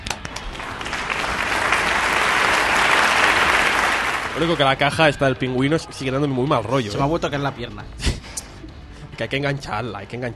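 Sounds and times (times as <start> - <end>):
applause: 0.0 - 5.1
speech: 4.4 - 8.0, 9.2 - 10.3.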